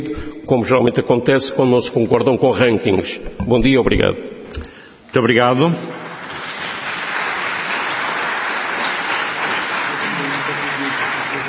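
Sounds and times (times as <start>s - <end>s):
speech: 0.0s - 6.0s
audience applause: 5.9s - 11.4s.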